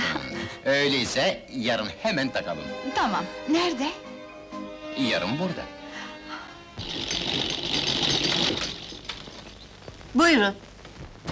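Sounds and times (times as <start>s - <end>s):
speech: 0.7s - 4.1s, 5.0s - 5.7s, 10.2s - 10.7s
sewing machine running: 6.8s - 9.2s.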